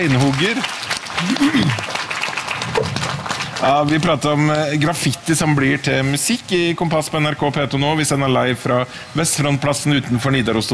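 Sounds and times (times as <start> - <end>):
speech: 0.0 - 2.0, 3.6 - 10.7
applause for a drummer and a stonemason at Olavsfest outside Nidaros Cathedral in Trondheim: 0.0 - 5.1.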